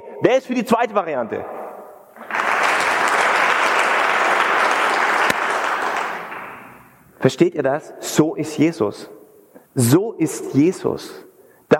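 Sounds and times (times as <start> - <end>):
speech: 0.2 - 1.6, 7.2 - 9.2, 9.8 - 11.7
audience applause: 2.2 - 6.9.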